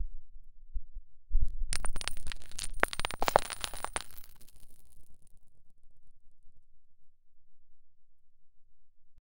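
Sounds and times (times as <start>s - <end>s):
gold clinking: 1.8s - 4.8s.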